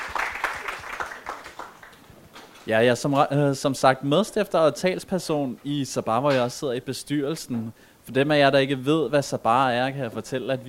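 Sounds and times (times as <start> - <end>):
audience applause: 0.0 - 2.1
speech: 2.6 - 10.6.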